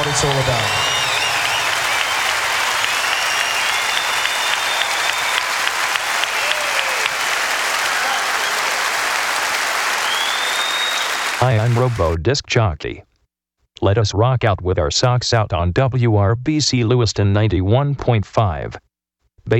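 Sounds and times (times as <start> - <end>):
faint audience whistles: 0.0 - 5.6, 10.0 - 11.4
audience applause: 0.0 - 12.2
speech: 0.1 - 0.9, 11.4 - 13.1, 13.8 - 18.8.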